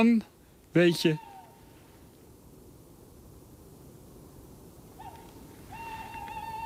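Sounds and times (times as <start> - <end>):
speech: 0.0 - 1.2
hiss: 0.0 - 6.6
owl hooting: 1.0 - 1.7, 4.9 - 6.6.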